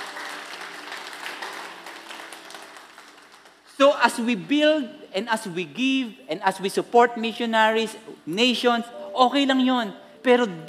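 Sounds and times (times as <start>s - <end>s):
church congregation clapping hands: 0.0s - 4.3s
speech: 3.8s - 10.6s.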